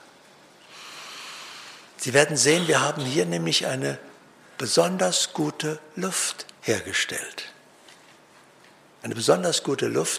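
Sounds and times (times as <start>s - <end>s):
audience taking a deep breath together: 0.6s - 2.0s
speech: 2.0s - 7.6s, 9.0s - 10.1s.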